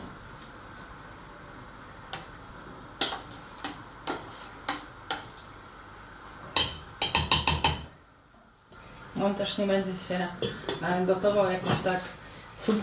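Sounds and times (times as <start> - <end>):
spoon knocking against a bogracz cauldron while stirring stew: 6.6 - 7.9
speech: 9.2 - 12.8.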